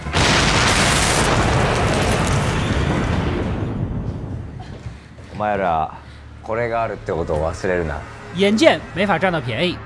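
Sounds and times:
explosion: 0:00.1 - 0:05.0
speech: 0:05.4 - 0:09.8.

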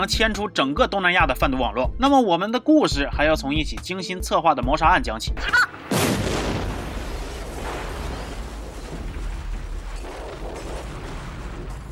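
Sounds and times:
speech: 0:00.0 - 0:06.2
crackling debris: 0:05.7 - 0:11.9
car explosion: 0:05.8 - 0:11.9.

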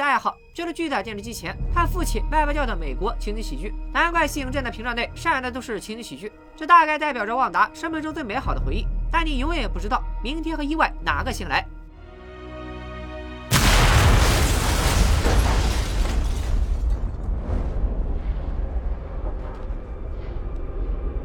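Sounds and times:
speech: 0:00.2 - 0:11.7
missile strikes: 0:13.5 - 0:17.4
explosion: 0:13.5 - 0:21.0.

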